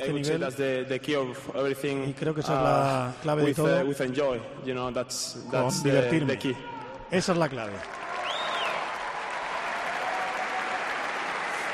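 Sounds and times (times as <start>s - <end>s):
speech: 0.0s - 8.0s
applause: 7.3s - 11.7s
high whistle: 8.2s - 8.9s.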